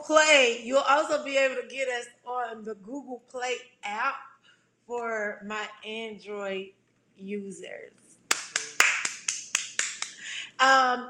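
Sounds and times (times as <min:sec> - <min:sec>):
speech: 0:00.1 - 0:04.3, 0:04.9 - 0:08.0, 0:10.6 - 0:11.0
finger snapping: 0:08.3 - 0:10.2.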